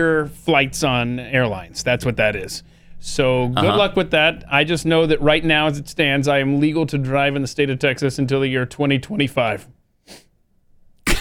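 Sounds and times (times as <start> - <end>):
speech: 0.0 - 10.2
person sniffing through the nose: 10.0 - 10.4.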